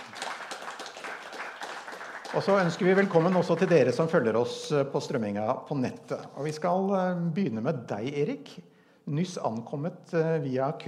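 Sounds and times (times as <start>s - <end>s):
audience applause: 0.0s - 4.2s
speech: 2.3s - 10.8s.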